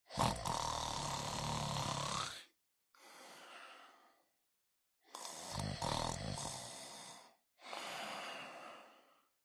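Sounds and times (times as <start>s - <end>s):
person snoring: 0.1s - 2.5s, 5.0s - 9.0s.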